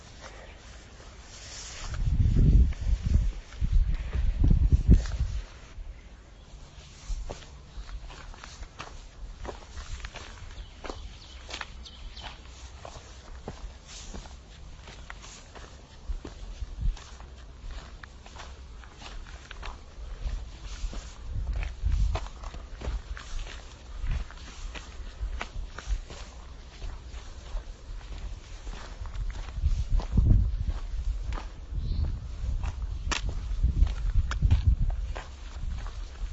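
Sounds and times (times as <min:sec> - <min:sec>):
footsteps of someone walking on Knocklofty: 0:00.0 - 0:05.8, 0:06.6 - 0:36.3.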